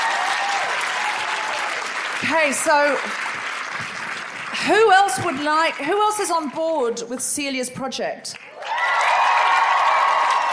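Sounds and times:
audience applause: 0.0s - 6.6s, 8.4s - 10.5s
speech: 2.2s - 3.9s, 4.6s - 8.5s.

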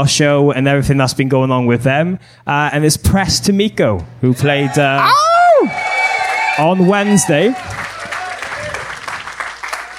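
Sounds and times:
speech: 0.0s - 5.8s, 6.6s - 7.8s
live audience cheering and applause: 4.7s - 9.9s
whoops and shouts: 4.8s - 8.9s.

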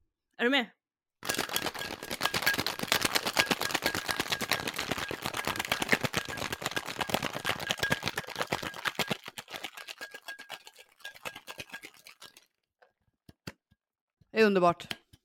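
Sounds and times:
speech: 0.4s - 1.4s, 14.4s - 15.0s
cocktail shaker shaking with ice: 1.2s - 12.5s.

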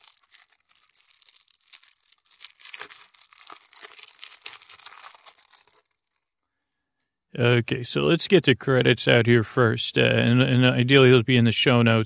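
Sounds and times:
packaging of the Fairytale Gloom game crinkling and tearing: 0.0s - 6.4s
speech: 7.3s - 12.0s.

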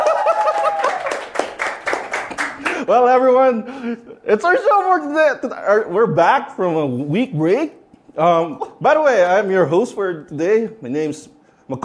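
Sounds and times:
group clapping at the opening of a showbiz chat show: 0.0s - 2.9s
speech: 2.9s - 11.8s.

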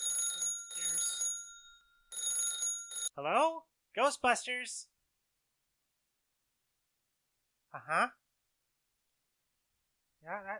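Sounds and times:
electronic telephone ringing: 0.0s - 3.2s
speech: 3.2s - 4.9s, 7.7s - 8.2s, 10.2s - 10.5s.

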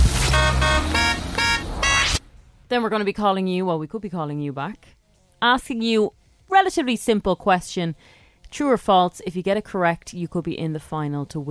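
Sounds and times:
radio call-in beep of buzzy horn-like electronic tones: 0.0s - 2.4s
speech: 2.7s - 11.4s.

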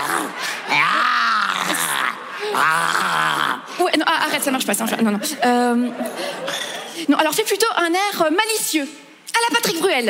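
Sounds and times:
person's voice imitating a growling tiger: 0.0s - 3.7s
speech: 2.6s - 10.0s.

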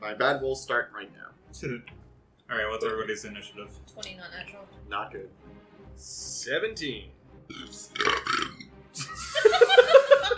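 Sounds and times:
speech: 0.0s - 10.3s
loud burp at a tabletop game session: 7.5s - 8.6s
laughter: 9.0s - 10.3s.

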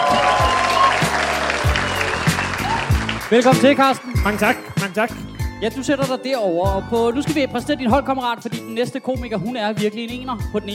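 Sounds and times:
studio audience applause for a comedian introduced on a TV comedy show: 0.0s - 5.2s
speech: 3.3s - 10.7s.

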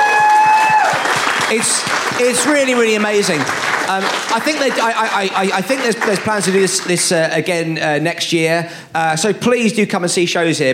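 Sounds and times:
audience applause: 0.0s - 7.2s
speech: 1.5s - 10.7s.

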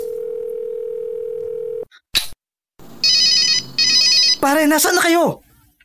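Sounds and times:
cellphone ringing in an old house: 0.0s - 1.9s, 3.0s - 4.4s
speech: 4.4s - 5.4s.

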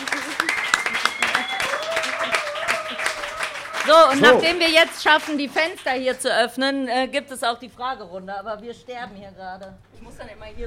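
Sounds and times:
audience applause: 0.0s - 5.9s
speech: 3.9s - 10.6s.

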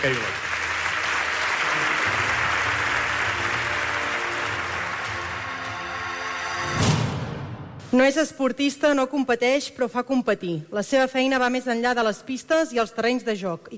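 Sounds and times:
speech: 0.0s - 0.4s, 7.9s - 13.7s
audience applause at a sports gala: 0.0s - 6.4s.

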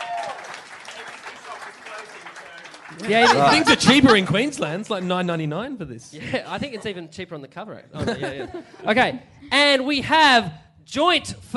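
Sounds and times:
audience applause: 0.0s - 5.5s
laughter: 2.9s - 4.9s, 7.9s - 9.2s
speech: 2.9s - 11.5s.

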